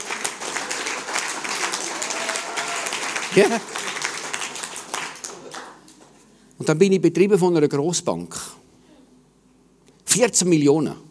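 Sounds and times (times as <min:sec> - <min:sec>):
audience clapping: 0:00.0 - 0:06.3
speech: 0:03.3 - 0:03.8, 0:06.6 - 0:08.6, 0:10.2 - 0:11.0.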